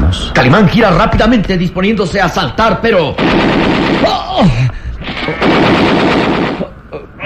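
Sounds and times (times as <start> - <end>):
speech: 0.2 - 6.3
gunfire in a radio drama: 3.2 - 6.7.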